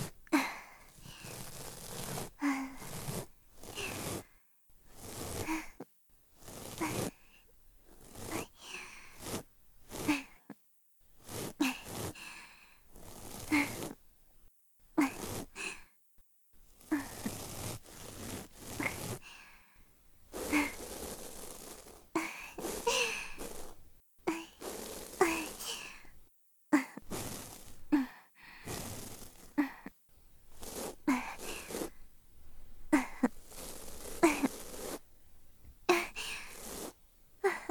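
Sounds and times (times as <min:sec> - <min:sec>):
breathing: 0:00.0 - 0:05.8, 0:06.4 - 0:10.5, 0:11.2 - 0:14.0, 0:15.2 - 0:16.0, 0:16.8 - 0:23.8, 0:24.4 - 0:26.2, 0:27.1 - 0:29.9, 0:30.5 - 0:32.1, 0:33.2 - 0:35.0, 0:36.0 - 0:37.6
ear cleaning sound effects: 0:00.9 - 0:10.5, 0:11.2 - 0:14.0, 0:15.0 - 0:15.7, 0:16.7 - 0:19.4, 0:20.3 - 0:26.2, 0:27.0 - 0:28.0, 0:28.6 - 0:29.8, 0:30.4 - 0:32.1, 0:32.9 - 0:35.1, 0:35.9 - 0:37.6.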